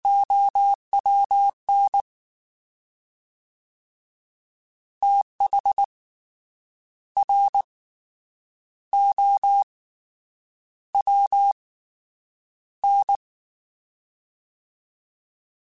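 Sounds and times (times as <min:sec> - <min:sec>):
fast CW Morse code groups: 0:00.0 - 0:02.0, 0:05.0 - 0:05.8, 0:07.2 - 0:07.7, 0:09.0 - 0:09.7, 0:11.0 - 0:11.6, 0:12.8 - 0:13.2.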